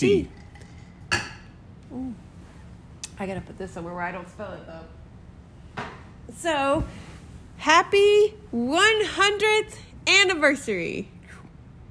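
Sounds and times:
speech: 0:00.0 - 0:00.4, 0:03.2 - 0:05.0, 0:05.8 - 0:11.2
cups clinking together in a toast: 0:00.2 - 0:01.6.

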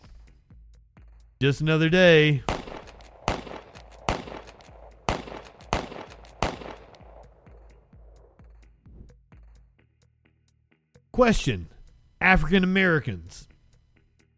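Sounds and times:
speech: 0:01.4 - 0:02.5, 0:11.2 - 0:13.5
gunfire sound effect in a satirical mass-shooting skit: 0:02.2 - 0:08.3.

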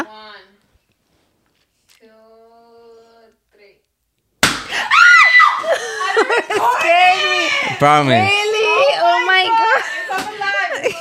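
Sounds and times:
balloon popping: 0:04.4 - 0:04.7
laughter: 0:05.5 - 0:11.0
speech: 0:07.8 - 0:08.4.

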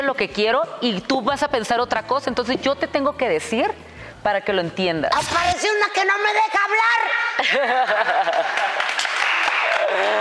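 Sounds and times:
speech: 0:00.1 - 0:08.8, 0:09.9 - 0:10.1
laughter: 0:07.2 - 0:10.1
applause: 0:08.3 - 0:10.1.

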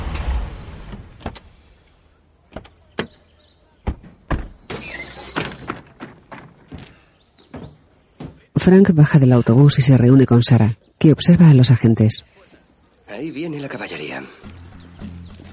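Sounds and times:
low rumble of FBI vehicles pulling up: 0:00.0 - 0:02.5
FBI vehicle doors thunking: 0:03.8 - 0:08.5
speech: 0:08.7 - 0:12.4, 0:13.2 - 0:14.3.

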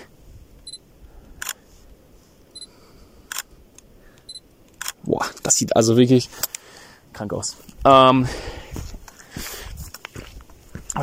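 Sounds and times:
camera focus beeps: 0:00.6 - 0:00.8, 0:02.5 - 0:02.7, 0:04.2 - 0:05.0
camera shutter click: 0:04.7 - 0:05.0
speech: 0:05.1 - 0:06.5, 0:07.2 - 0:08.6.

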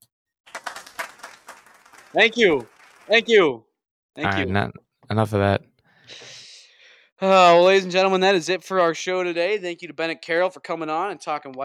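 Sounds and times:
applause sound effect: 0:00.5 - 0:03.3
speech: 0:02.1 - 0:06.3, 0:07.2 - 0:11.6.

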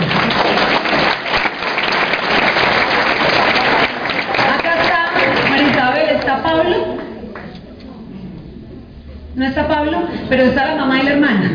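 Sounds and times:
audience applause: 0:00.0 - 0:06.1
speech: 0:09.4 - 0:11.5.

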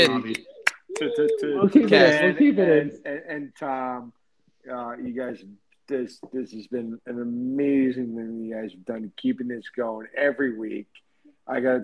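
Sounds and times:
brief clapping: 0:00.0 - 0:01.5
speech: 0:00.0 - 0:11.8.

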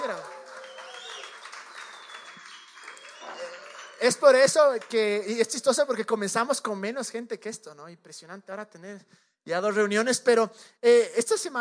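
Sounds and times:
voices and cheering: 0:00.0 - 0:04.4
audience applause: 0:00.0 - 0:05.4
speech: 0:04.0 - 0:11.5.

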